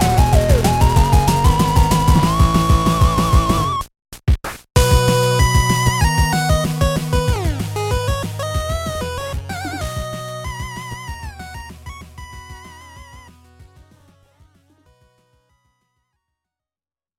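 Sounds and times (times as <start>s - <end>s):
8-bit chiptune: 0.6s - 3.8s, 4.8s - 13.3s.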